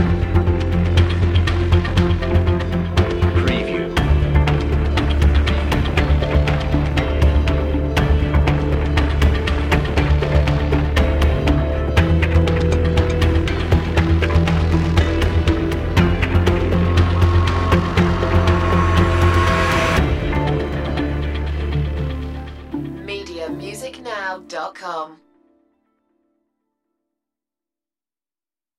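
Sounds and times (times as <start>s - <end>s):
dark suspenseful ambience track with pulsing: 0.0s - 22.9s.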